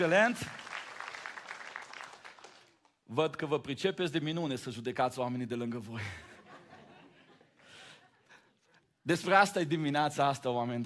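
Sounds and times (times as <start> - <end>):
speech: 0.0 - 0.6, 3.1 - 6.3, 9.0 - 10.8
audience applause: 0.0 - 2.9
laughter: 6.0 - 8.6.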